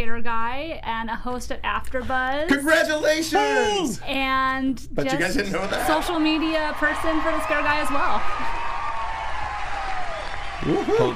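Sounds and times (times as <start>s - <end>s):
speech: 0.0s - 8.6s, 10.6s - 11.1s
applause: 6.0s - 11.1s.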